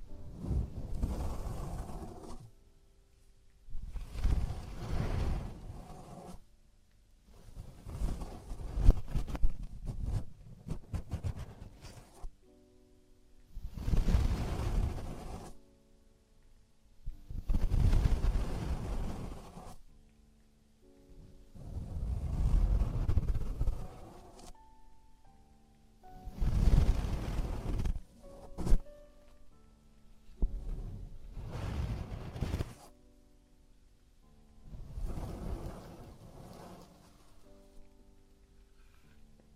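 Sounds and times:
traditional Chinese ear cleaning scraping and rustling: 0.0 - 2.5, 3.9 - 6.4, 7.3 - 12.3, 13.6 - 15.6, 17.2 - 19.8, 21.6 - 24.6, 26.3 - 29.0, 30.5 - 32.9, 34.7 - 37.6.

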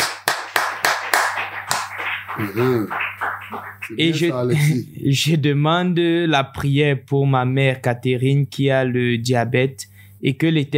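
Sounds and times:
rhythmic clapping acclaiming the name of Jesus: 0.0 - 4.7
laughter: 2.0 - 4.8
speech: 2.4 - 10.7.

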